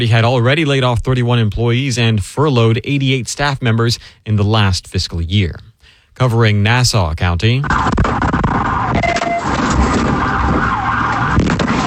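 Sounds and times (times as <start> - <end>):
speech: 0.0 - 8.2
police vehicle siren wailing during a pursuit in Fernandina Beach: 8.5 - 11.8.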